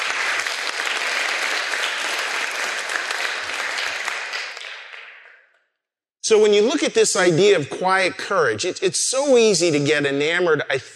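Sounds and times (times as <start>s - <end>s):
audience applause: 0.0s - 5.3s
speech: 6.3s - 10.9s.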